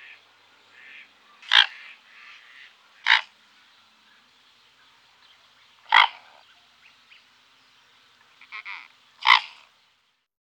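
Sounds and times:
mute swan giving short nasal calls: 0:00.0 - 0:03.5, 0:05.8 - 0:06.4, 0:08.3 - 0:09.7.

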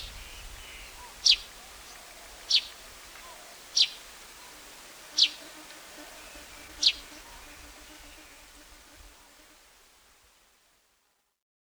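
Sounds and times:
plain-backed sparrow calling: 0:00.0 - 0:05.4, 0:06.2 - 0:08.2.

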